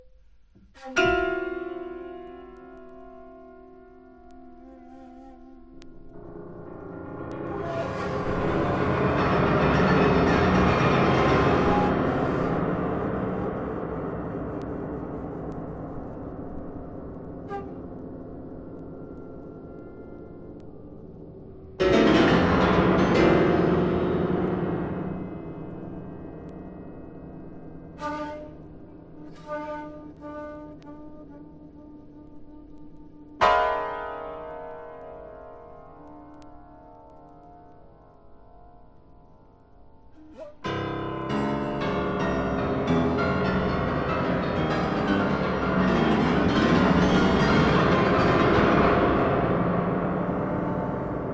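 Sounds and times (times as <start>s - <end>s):
piano: 0.0s - 51.3s
shakuhachi: 0.6s - 2.0s, 4.3s - 6.2s, 7.3s - 16.6s, 17.2s - 18.3s, 28.0s - 33.4s, 40.2s - 41.0s.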